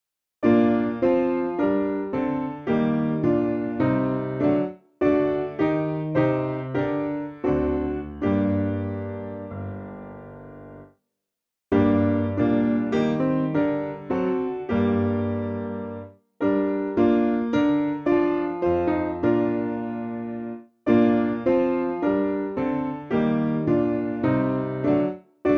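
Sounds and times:
piano: 0:00.4 - 0:11.0, 0:11.7 - 0:25.5.

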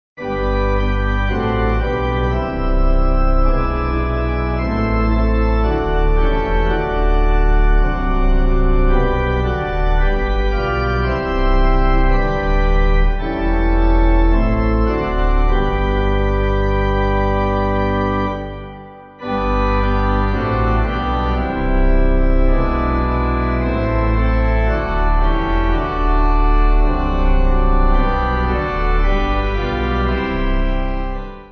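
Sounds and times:
pipe organ: 0:00.2 - 0:31.5.

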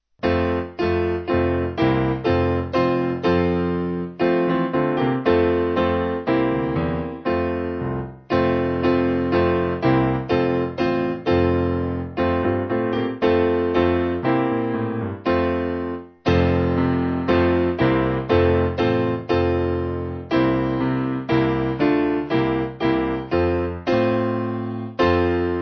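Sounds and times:
piano: 0:00.0 - 0:25.5.

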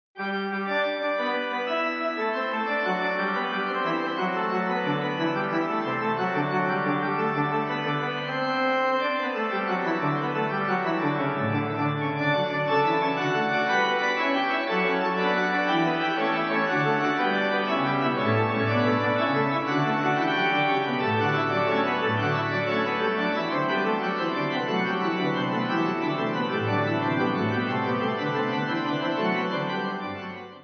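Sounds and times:
gigue fugue on pipe organ: 0:00.2 - 0:30.6.

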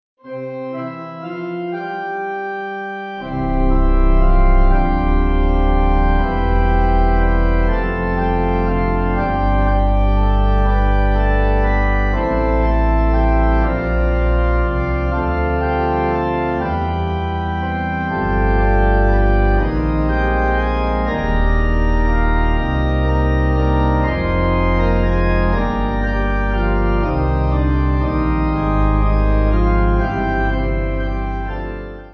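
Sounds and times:
pipe organ church music backing: 0:00.2 - 0:32.1.

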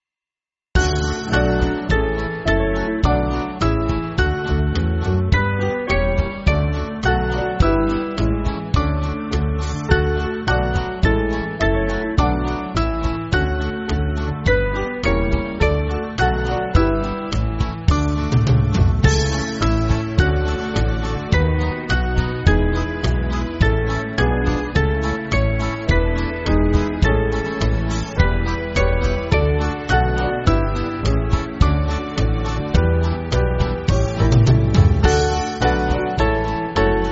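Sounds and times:
band playing church music: 0:00.8 - 0:37.1.

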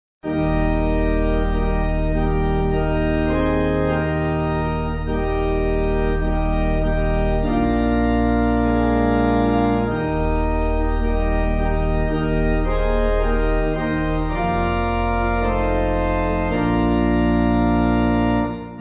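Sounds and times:
pipe organ: 0:00.2 - 0:18.8.

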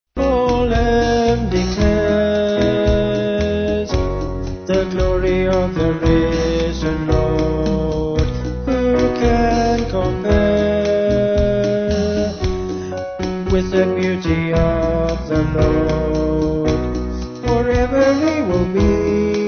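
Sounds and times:
band with vocals: 0:00.2 - 0:19.4.

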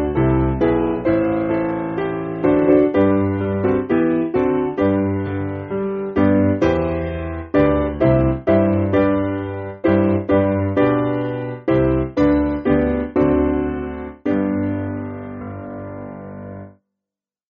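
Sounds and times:
piano: 0:00.0 - 0:16.8.

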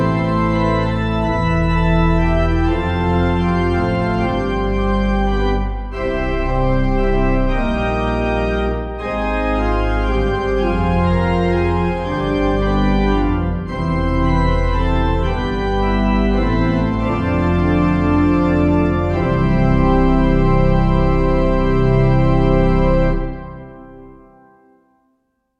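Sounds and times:
pipe organ church backing music: 0:00.0 - 0:24.8.

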